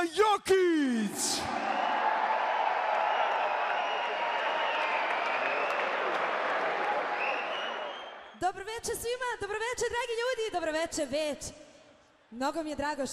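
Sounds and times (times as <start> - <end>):
speech: 0.1 - 1.8, 8.6 - 11.6, 12.3 - 13.1
audience applause at a kafana-style music evening: 1.5 - 8.3.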